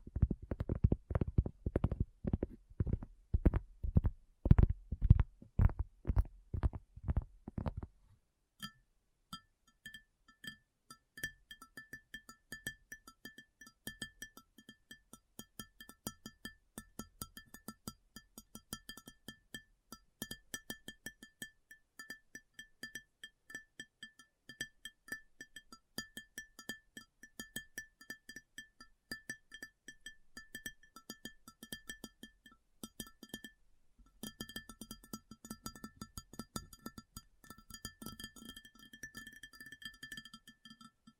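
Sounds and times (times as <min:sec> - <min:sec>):
loud low thumping taps: 0:00.0 - 0:07.9.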